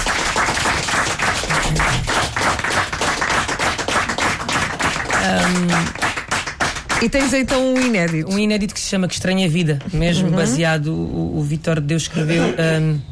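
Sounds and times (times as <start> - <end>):
audience applause: 0.0 - 8.2
speech: 7.0 - 13.1.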